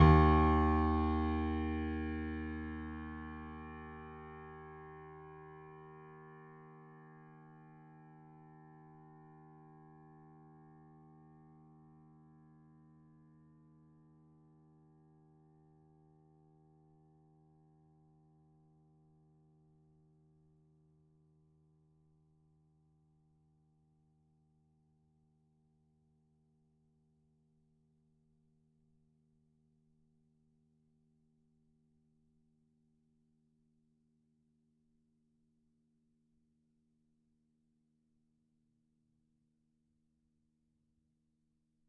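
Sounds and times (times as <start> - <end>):
grand piano note D#2: 0.0 - 4.0.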